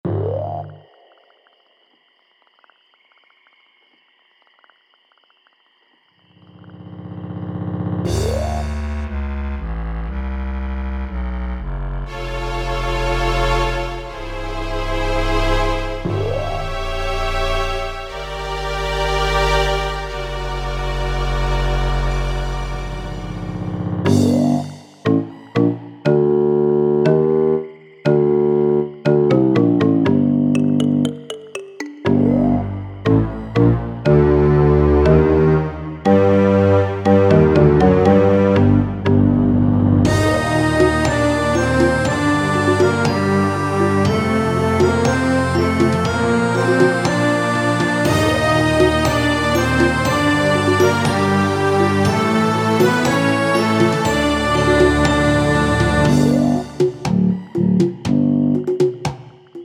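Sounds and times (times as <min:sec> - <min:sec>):
swamp music: 0:07.9 - 0:59.6.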